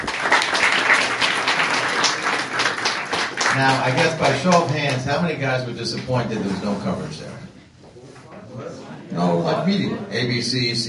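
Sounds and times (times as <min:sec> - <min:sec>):
group clapping: 0:00.0 - 0:05.2
speech: 0:03.6 - 0:07.5, 0:09.2 - 0:10.8.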